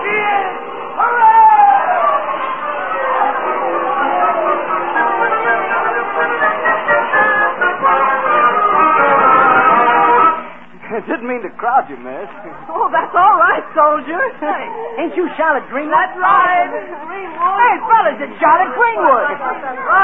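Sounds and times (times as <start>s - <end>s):
people shouting excitedly: 0.0s - 5.7s, 13.2s - 20.0s
surging New Year's Eve crowd babble: 0.0s - 20.0s
speech: 11.3s - 20.0s.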